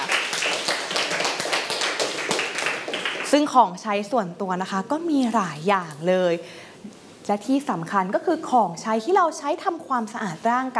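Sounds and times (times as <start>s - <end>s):
children clapping: 0.0s - 3.4s
speech: 3.3s - 10.7s.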